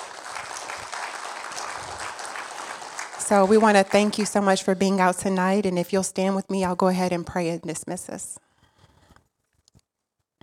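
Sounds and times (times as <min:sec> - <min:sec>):
audience applause: 0:00.0 - 0:04.6
speech: 0:03.3 - 0:08.4.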